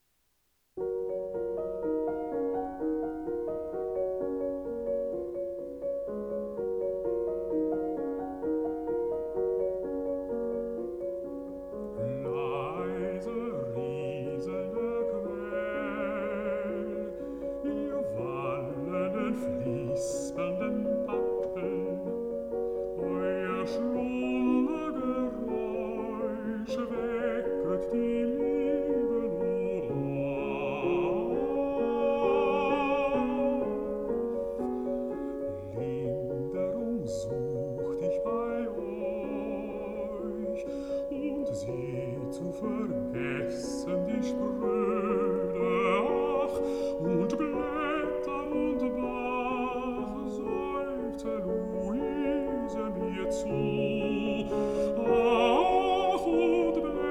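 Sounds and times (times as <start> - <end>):
piano: 0.0 - 57.1
person singing: 11.8 - 57.1.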